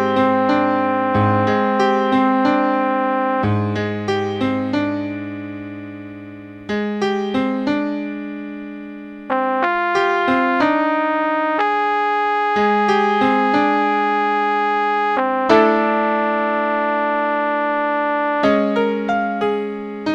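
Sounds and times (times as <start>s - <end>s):
flugelhorn playing a duet in A-flat: 0.0s - 3.7s, 9.3s - 19.3s
piano playing a duet in A-flat: 0.0s - 20.1s.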